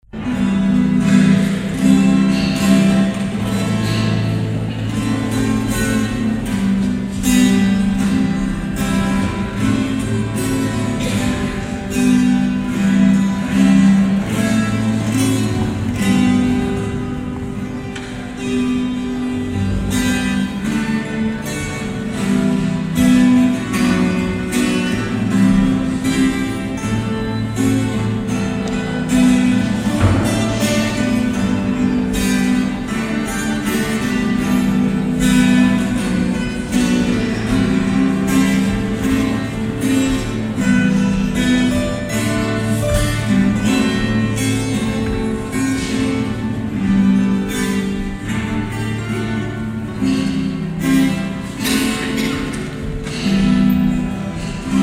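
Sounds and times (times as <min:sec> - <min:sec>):
guitar solo: 0:00.2 - 0:54.8.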